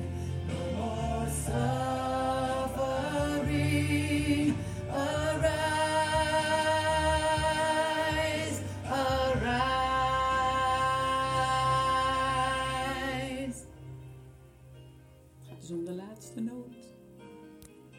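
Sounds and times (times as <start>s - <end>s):
bass part of an interlude and second chorus: 0.0s - 13.9s.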